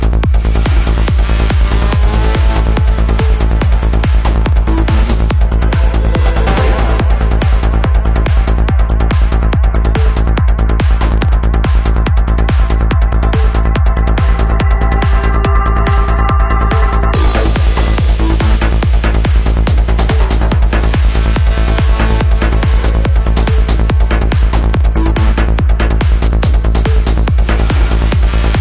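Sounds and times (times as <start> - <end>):
drums: 0.0 - 28.5
psychedelic progressive trance music with drums: 0.0 - 28.5.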